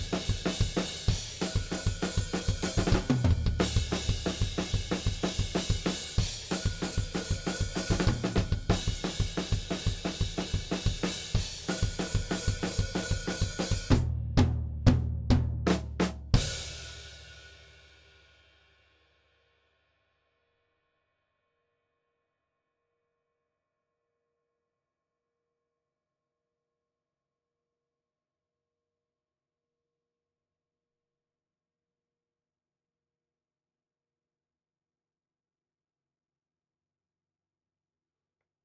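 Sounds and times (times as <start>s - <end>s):
drums: 0.0s - 19.0s.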